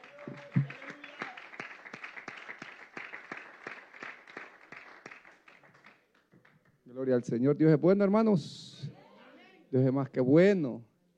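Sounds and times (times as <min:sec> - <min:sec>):
crowd clapping: 0:00.0 - 0:06.8
speech: 0:07.0 - 0:08.6, 0:09.7 - 0:11.1.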